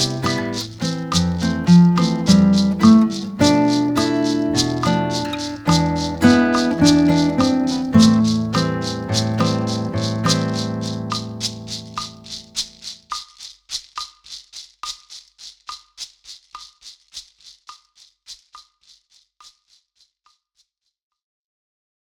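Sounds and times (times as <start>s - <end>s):
musical accompaniment: 0.0s - 12.5s.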